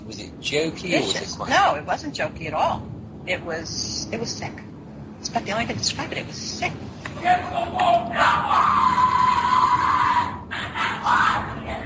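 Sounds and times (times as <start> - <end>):
speech: 0.2 - 4.7, 5.3 - 9.1
crowd yelling and shouting at a Skull and Bones initiation ceremony: 7.2 - 11.8.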